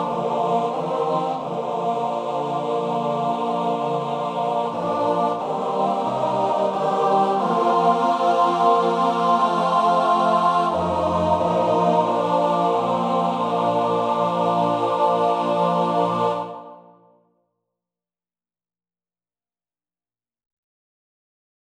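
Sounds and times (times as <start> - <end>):
male choir singing in three parts: 0.0 - 17.0.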